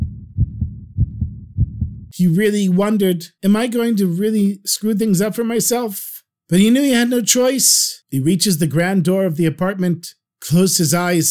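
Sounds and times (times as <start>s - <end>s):
fast heartbeat: 0.0s - 2.2s
speech: 2.1s - 11.2s.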